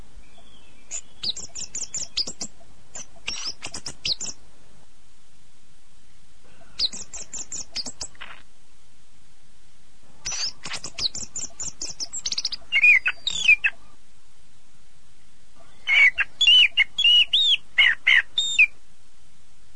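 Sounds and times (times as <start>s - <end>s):
bird song of rapid bright twittering phrases with sweeping whistled notes: 0.1s - 4.4s, 6.1s - 8.4s, 10.2s - 14.0s, 15.6s - 18.8s.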